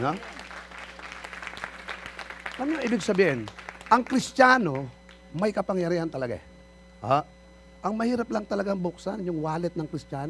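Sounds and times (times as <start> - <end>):
speech: 0.0 - 0.4, 2.6 - 10.2
church congregation applauding in praise of God: 0.0 - 5.5.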